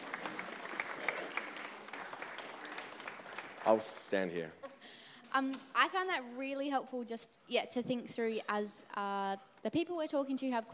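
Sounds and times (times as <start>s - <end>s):
audience applause: 0.0s - 4.0s
speech: 3.6s - 4.6s, 5.3s - 10.7s.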